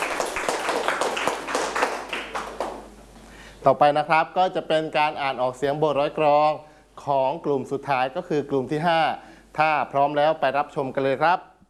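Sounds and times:
hands clapping: 0.0 - 3.0
speech: 3.6 - 11.5.

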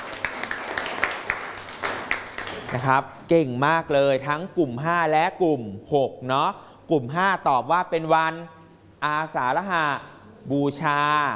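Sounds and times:
classroom applause for classmates: 0.0 - 3.0
low noise: 0.0 - 11.3
speech: 2.7 - 11.3.

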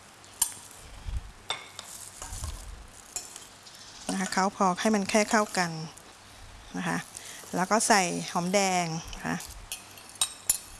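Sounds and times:
straw mushrooms sizzling as they fry in a pan: 0.0 - 10.7
utensil scraping and tapping against the pan: 1.5 - 5.7, 8.4 - 10.7
speech: 4.2 - 6.0, 6.7 - 9.5.

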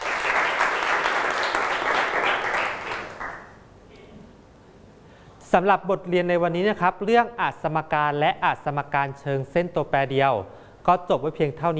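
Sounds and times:
class clapping applause: 0.0 - 3.6
speech: 5.5 - 11.7.

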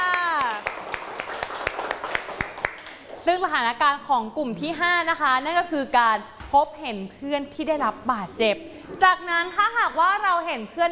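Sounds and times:
class of children clapping: 0.0 - 3.2
speech: 3.2 - 10.8.

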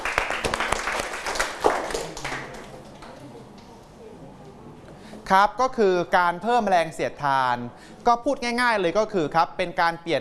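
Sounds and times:
students clapping for classmate: 0.0 - 3.2
speech: 5.3 - 10.2.

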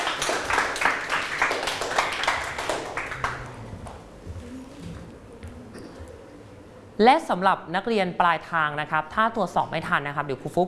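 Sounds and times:
classroom clapping: 0.0 - 4.0
speech: 7.0 - 10.6.

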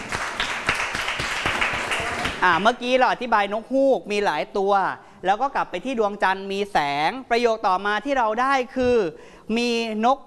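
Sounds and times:
classroom applause: 0.0 - 2.5
speech: 2.4 - 10.2.

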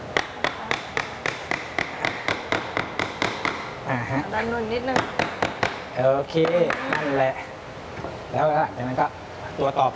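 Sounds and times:
hammer tapping wooden joint piece into place: 0.1 - 3.7, 4.9 - 5.9, 6.4 - 7.1
speech: 4.4 - 5.3, 6.0 - 7.5, 8.3 - 9.9.

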